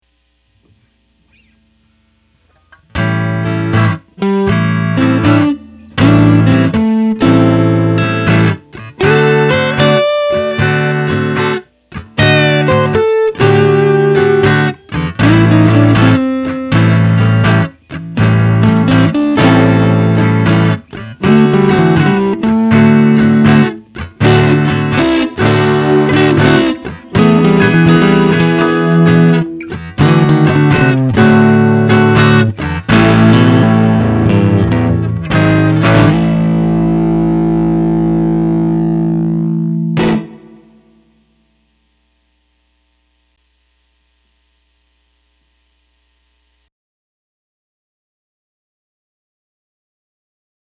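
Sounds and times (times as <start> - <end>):
12-bar blues in A minor: 2.8 - 41.0.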